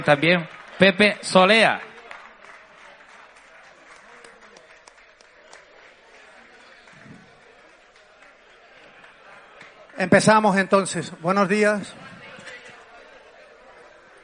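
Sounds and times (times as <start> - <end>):
speech: 0.0 - 1.9, 10.0 - 12.1
audience applause welcoming a speaker: 0.0 - 14.2.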